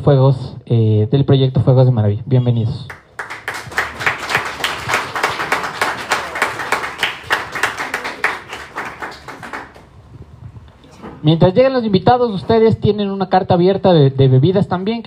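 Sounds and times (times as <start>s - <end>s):
speech: 0.0s - 3.0s, 11.2s - 15.0s
audience applause greeting guests on a show: 2.9s - 10.0s.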